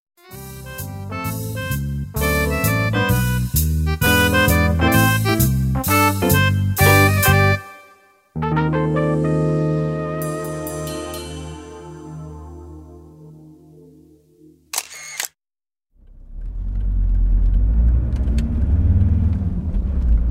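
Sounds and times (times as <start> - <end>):
short musical jingle: 0.3 - 14.7
car engine rumbling driving to the airport: 16.0 - 20.3.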